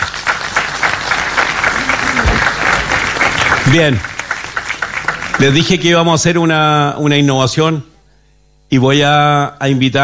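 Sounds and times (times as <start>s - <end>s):
audience applause: 0.0s - 6.3s
speech: 3.7s - 4.1s, 5.4s - 7.9s, 8.7s - 10.0s.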